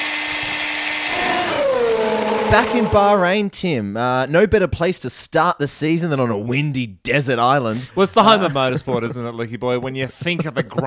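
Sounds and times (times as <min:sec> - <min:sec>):
construction site power tool drilling: 0:00.0 - 0:03.2
speech: 0:02.5 - 0:10.8
laughter: 0:07.7 - 0:10.8.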